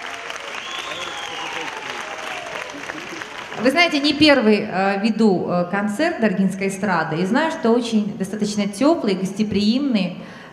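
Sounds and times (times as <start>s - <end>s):
audience applause: 0.0s - 4.5s
speech: 3.6s - 10.4s.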